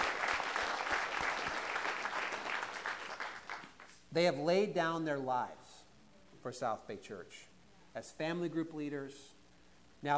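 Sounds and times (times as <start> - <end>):
audience applause: 0.0 - 3.9
speech: 4.1 - 5.6, 6.4 - 9.4, 10.0 - 10.1.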